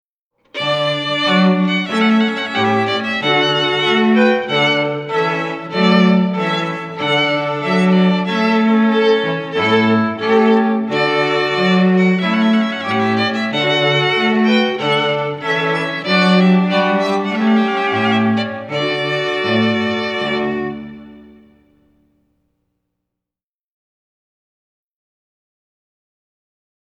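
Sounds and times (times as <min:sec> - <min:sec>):
trumpet: 0:00.6 - 0:21.8.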